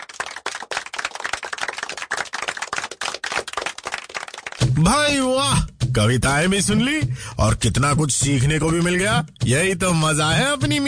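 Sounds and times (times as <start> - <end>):
loud crowd applause: 0.0 - 4.7
speech: 4.8 - 10.8.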